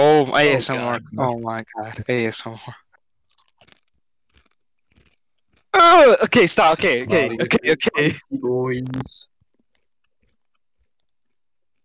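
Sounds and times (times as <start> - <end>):
speech: 0.2 - 2.8, 5.8 - 9.3
crunching on a spicy chip during a quiz challenge: 3.2 - 5.7, 9.5 - 11.8.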